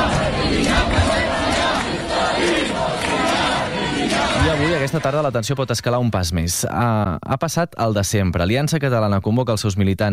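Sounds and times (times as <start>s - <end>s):
large crowd shouting protest chants: 0.0s - 5.7s
speech: 4.8s - 10.1s.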